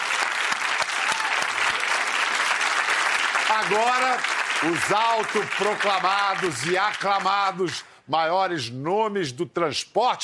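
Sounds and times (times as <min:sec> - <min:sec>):
audience applause: 0:00.0 - 0:07.8
speech: 0:03.6 - 0:10.2.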